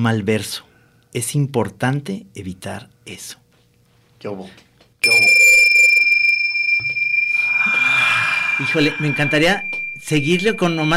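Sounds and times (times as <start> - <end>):
speech: 0.0 - 3.4, 4.2 - 5.6, 8.6 - 10.9
bell ringing: 5.0 - 10.9.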